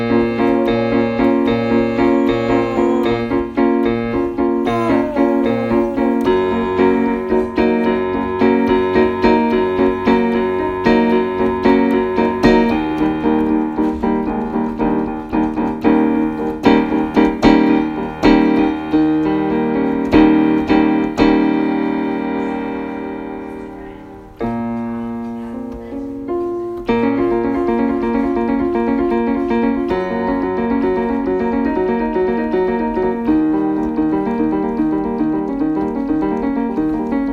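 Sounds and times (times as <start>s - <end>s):
waltz on piano: 0.0s - 37.3s.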